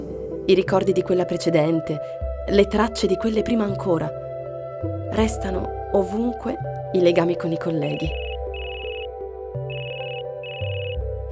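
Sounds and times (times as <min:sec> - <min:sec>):
speech: 0:00.5 - 0:04.2, 0:05.1 - 0:08.2
telephone ringing for an incoming call: 0:08.0 - 0:09.1, 0:09.7 - 0:11.0.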